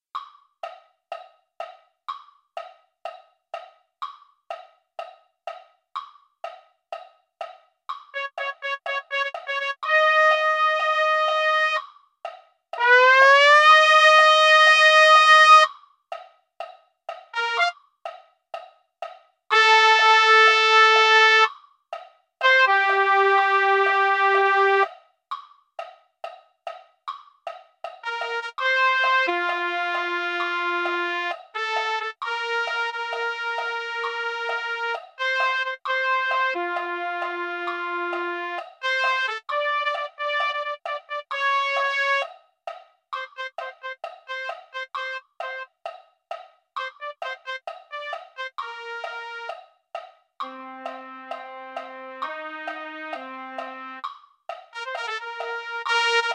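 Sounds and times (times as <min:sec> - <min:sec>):
trumpet: 0:08.1 - 0:11.8, 0:12.8 - 0:15.7, 0:17.3 - 0:17.8, 0:19.5 - 0:21.5, 0:22.4 - 0:24.9, 0:28.0 - 0:42.3, 0:43.2 - 0:45.6, 0:46.8 - 0:49.6, 0:50.4 - 0:54.0, 0:54.7 - 0:56.3.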